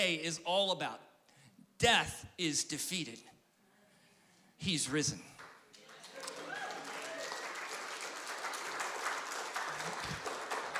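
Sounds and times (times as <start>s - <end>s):
speech: 0.0s - 1.1s, 1.8s - 3.4s, 4.6s - 5.3s
audience applause: 5.4s - 10.7s.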